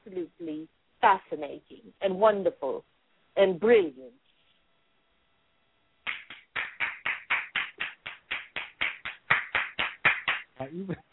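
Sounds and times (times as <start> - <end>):
speech: 0.1 - 4.2, 10.6 - 11.1
clapping: 6.0 - 10.6.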